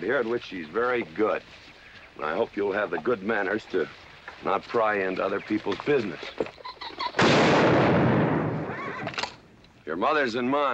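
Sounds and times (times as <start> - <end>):
speech: 0.0 - 6.6, 9.9 - 10.7
gunshot: 7.2 - 9.3.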